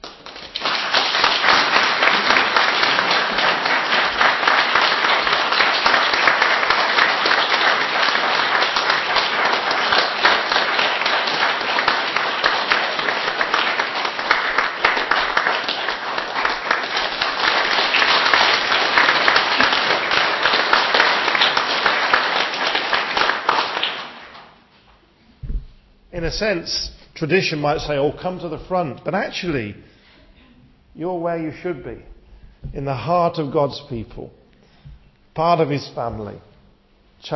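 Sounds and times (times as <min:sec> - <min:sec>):
audience applause: 0:00.0 - 0:24.6
speech: 0:26.3 - 0:29.9, 0:31.0 - 0:32.1, 0:32.7 - 0:34.4, 0:35.4 - 0:36.5, 0:37.2 - 0:37.3.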